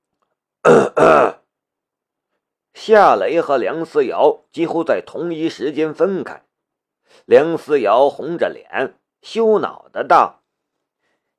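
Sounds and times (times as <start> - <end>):
embarrassed throaty coughs: 0.6 - 1.5
speech: 1.0 - 1.4, 2.9 - 6.5, 7.1 - 10.4.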